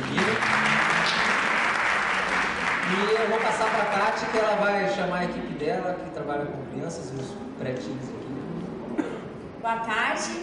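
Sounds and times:
audience applause: 0:00.0 - 0:04.6
speech: 0:03.0 - 0:08.4, 0:09.6 - 0:10.4.

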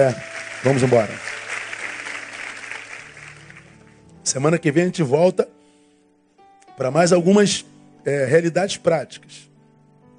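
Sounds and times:
speech: 0:00.0 - 0:01.4, 0:04.2 - 0:05.5, 0:06.8 - 0:09.5
audience applause: 0:00.0 - 0:04.0.

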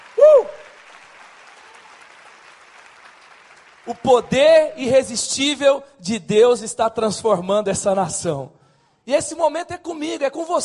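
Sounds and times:
crowd clapping: 0:00.0 - 0:04.5
speech: 0:03.9 - 0:10.6.

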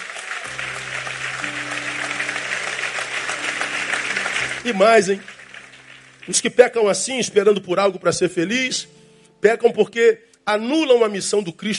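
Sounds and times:
audience applause: 0:00.0 - 0:06.5
speech: 0:04.6 - 0:05.3, 0:06.3 - 0:11.7.

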